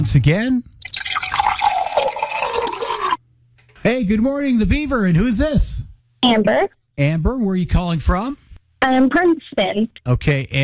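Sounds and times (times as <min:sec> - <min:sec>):
speech: 0:00.0 - 0:00.7, 0:03.8 - 0:10.6
drink poured into a glass: 0:00.8 - 0:03.2.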